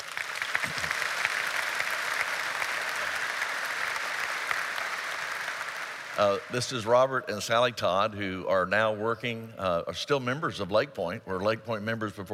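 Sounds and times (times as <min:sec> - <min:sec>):
crowd clapping: 0:00.0 - 0:07.2
speech: 0:06.2 - 0:12.3.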